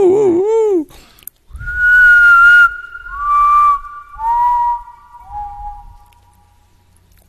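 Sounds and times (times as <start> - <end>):
whistled imitation of a potoo's call: 1.6 - 6.2.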